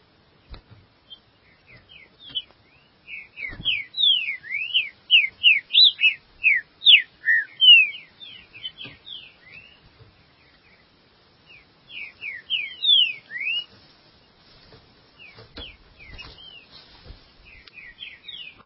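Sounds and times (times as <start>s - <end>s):
Green-winged Saltator singing whistled notes: 3.1s - 8.7s, 11.9s - 13.7s.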